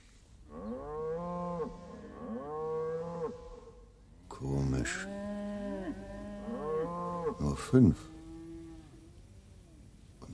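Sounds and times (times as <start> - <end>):
cattle mooing: 0.5 - 3.8, 4.8 - 9.1
speech: 4.4 - 5.2, 7.4 - 8.2.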